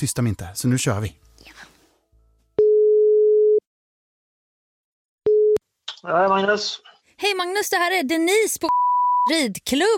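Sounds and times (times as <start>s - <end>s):
speech: 0.0s - 1.7s, 6.0s - 9.9s
telephone ringing tone on the line after a number is dialed: 2.6s - 3.6s, 5.3s - 5.6s.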